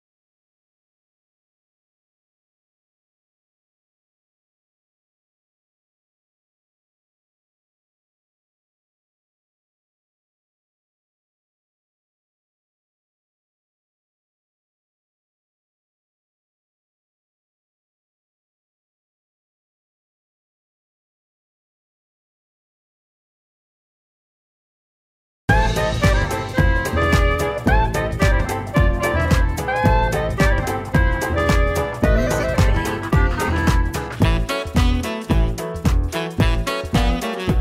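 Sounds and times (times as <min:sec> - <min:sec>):
electro swing Christmas song: 0:25.5 - 0:37.5.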